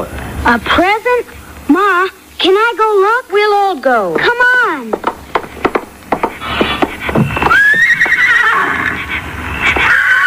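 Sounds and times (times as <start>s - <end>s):
speech: 0.0s - 5.0s
hooves clopping: 4.2s - 10.0s
pony whinnying: 7.2s - 10.2s.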